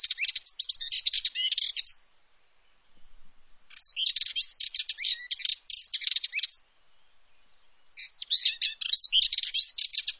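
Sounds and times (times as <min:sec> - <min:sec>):
bird chirps and twitters: 0:00.0 - 0:02.0, 0:03.7 - 0:06.7, 0:07.4 - 0:10.1.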